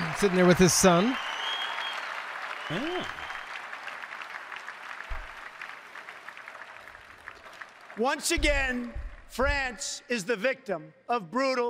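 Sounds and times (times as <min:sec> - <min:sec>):
audience applause: 0:00.0 - 0:08.9
speech: 0:00.2 - 0:01.2, 0:02.7 - 0:03.2, 0:08.0 - 0:11.6.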